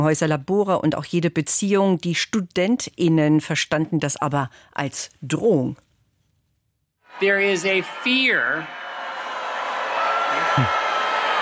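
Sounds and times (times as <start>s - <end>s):
speech: 0.0s - 5.8s, 7.2s - 8.8s, 10.6s - 10.8s
audience booing: 7.1s - 11.4s.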